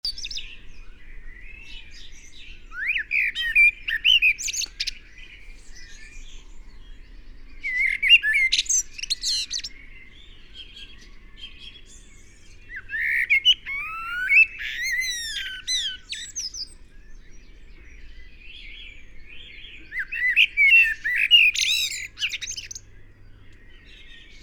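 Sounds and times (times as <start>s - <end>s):
Eurasian blackbird singing: 0.0s - 24.4s.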